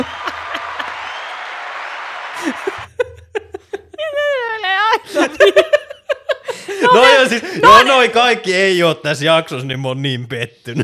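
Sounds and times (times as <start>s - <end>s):
people laughing: 0.0s - 1.2s, 2.3s - 8.2s
applause sound effect from a button: 0.0s - 3.0s
speech: 7.2s - 10.8s.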